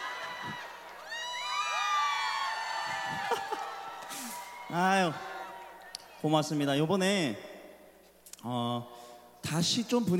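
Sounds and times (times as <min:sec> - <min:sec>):
audience applause: 0:00.0 - 0:04.6
audience cheering: 0:00.0 - 0:06.6
speech: 0:04.7 - 0:05.3, 0:06.2 - 0:07.5, 0:08.4 - 0:10.1.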